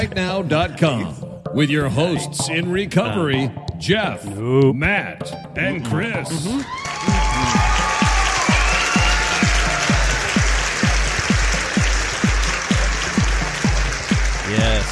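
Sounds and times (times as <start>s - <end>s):
speech: 0.0s - 7.8s
applause: 6.6s - 14.9s.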